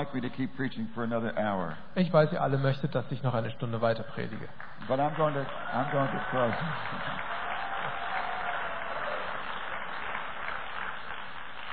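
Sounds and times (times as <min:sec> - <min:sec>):
speech: 0:00.0 - 0:08.0
crowd applause: 0:04.6 - 0:11.7.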